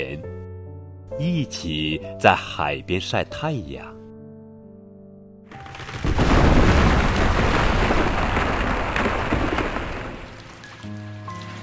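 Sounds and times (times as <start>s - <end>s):
speech: 1.2s - 4.0s
thunder: 5.5s - 10.7s
heavy rain downpour: 5.5s - 11.6s.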